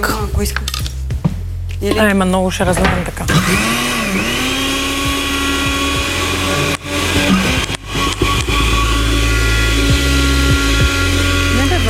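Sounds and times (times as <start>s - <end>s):
speech: 0.0s - 0.9s, 1.8s - 4.6s, 6.5s - 7.4s
blender motor running with ice stuck in it: 3.3s - 11.8s.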